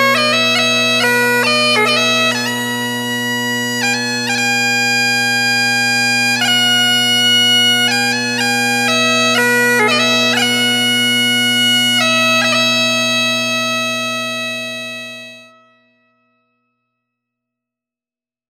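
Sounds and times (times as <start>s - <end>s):
bagpipes playing wedding music: 0.0s - 15.8s.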